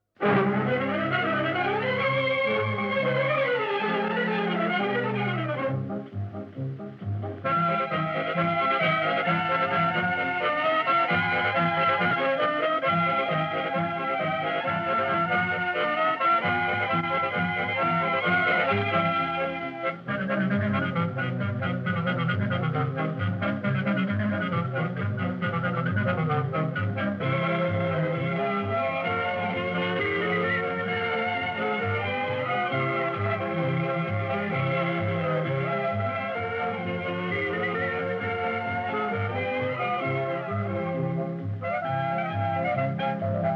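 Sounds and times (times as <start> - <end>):
instrumental music: 0.0 - 43.5.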